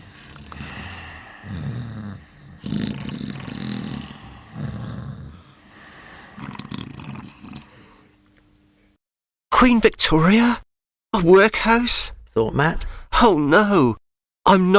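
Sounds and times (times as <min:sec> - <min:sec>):
snoring: 0:00.0 - 0:08.2
speech: 0:09.6 - 0:14.7.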